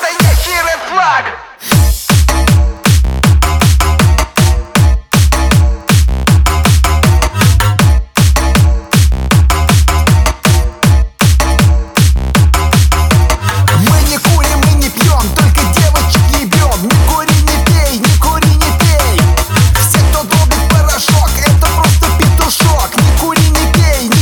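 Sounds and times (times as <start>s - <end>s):
hard bass: 0.0s - 0.8s, 1.6s - 24.2s.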